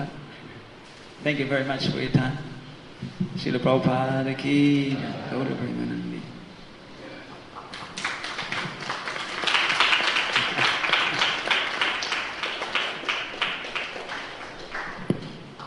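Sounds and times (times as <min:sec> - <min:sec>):
speech: 0:01.2 - 0:06.4
audience clapping in Mayapur: 0:07.5 - 0:15.6.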